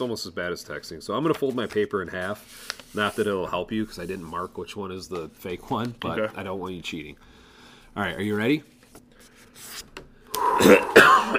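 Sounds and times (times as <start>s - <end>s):
speech: 0.0s - 7.3s, 8.0s - 8.7s
person coughing to clear the lungs: 10.4s - 11.3s.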